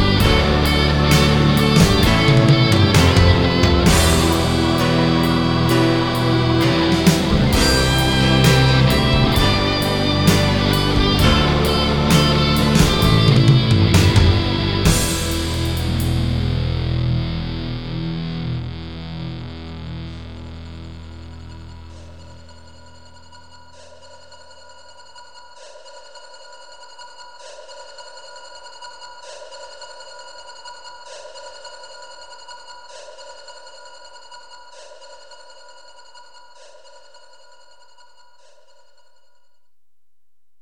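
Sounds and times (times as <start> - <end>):
instrumental music: 0.0 - 19.0.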